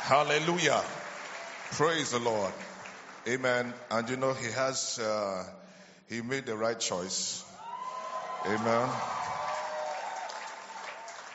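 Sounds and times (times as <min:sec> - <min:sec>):
church congregation clapping honouring a pastor's marriage: 0:00.0 - 0:04.2, 0:08.0 - 0:11.3
speech: 0:00.1 - 0:01.0, 0:01.7 - 0:07.5, 0:08.4 - 0:09.2.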